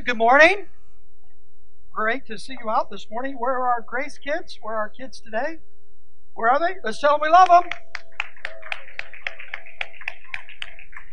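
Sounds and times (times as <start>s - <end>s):
speech: 0.1s - 0.8s, 2.0s - 5.7s, 6.4s - 7.9s
audience clapping for the kids: 7.4s - 11.1s.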